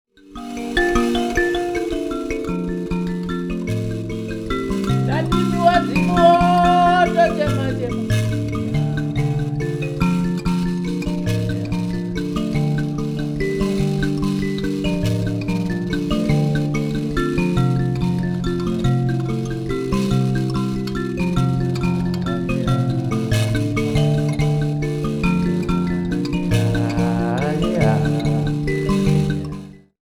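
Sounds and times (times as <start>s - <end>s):
mbira: 0.2s - 29.9s.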